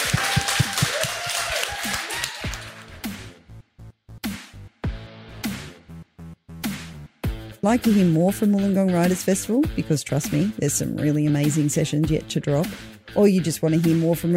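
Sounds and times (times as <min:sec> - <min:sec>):
audience applause: 0:00.0 - 0:03.0
speech: 0:07.6 - 0:14.3.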